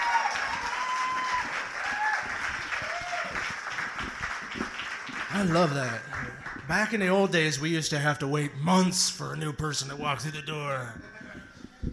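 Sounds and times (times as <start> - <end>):
audience applause: 0.0 - 7.1
speech: 5.4 - 6.1, 6.7 - 11.1.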